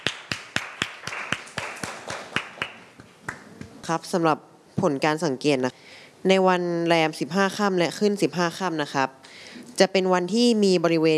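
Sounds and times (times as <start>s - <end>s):
classroom group clapping in unison: 0.0s - 3.8s
speech: 3.9s - 9.2s, 9.8s - 11.1s.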